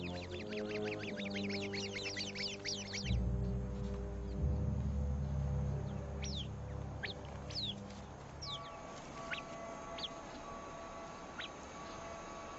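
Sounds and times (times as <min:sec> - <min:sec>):
bird flock alarm calls rallying against a snake: 0:00.0 - 0:03.3, 0:05.8 - 0:12.5
steady low drone: 0:00.0 - 0:12.5.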